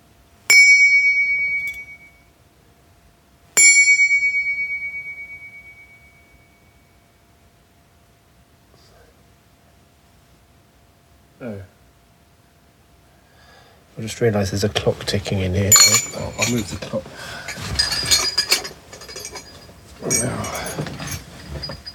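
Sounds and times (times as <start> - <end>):
found objects struck and ringing: 0.5 - 2.2, 3.6 - 6.8, 15.7 - 16.8, 17.5 - 21.9
speech: 14.0 - 17.8, 20.0 - 20.8.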